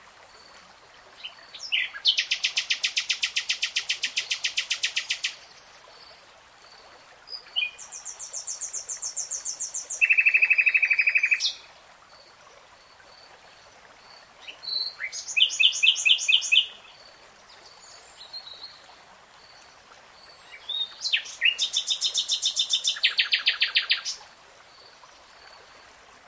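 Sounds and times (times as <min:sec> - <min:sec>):
nightingale song: 0:01.2 - 0:05.4, 0:07.3 - 0:11.7, 0:14.4 - 0:18.8, 0:20.2 - 0:24.2.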